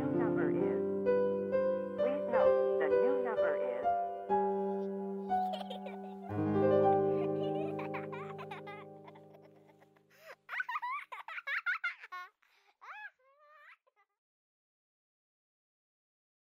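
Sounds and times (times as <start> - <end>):
background piano music: 0.0 - 10.1
laughter: 5.3 - 6.3, 7.0 - 9.9, 10.5 - 12.3.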